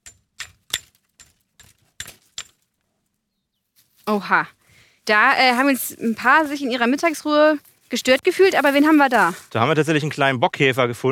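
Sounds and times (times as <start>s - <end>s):
stick tapping on branches: 0.0s - 2.7s, 5.1s - 9.6s
speech: 4.1s - 11.1s.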